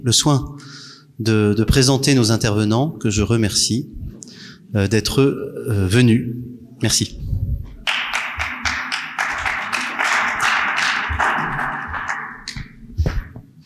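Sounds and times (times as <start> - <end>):
speech: 0.0 - 7.2
audience applause: 7.9 - 12.7.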